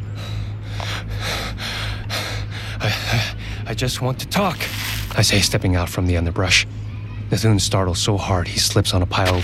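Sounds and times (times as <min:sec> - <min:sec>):
heavy panting after running: 0:00.2 - 0:03.6
speech: 0:03.7 - 0:09.4.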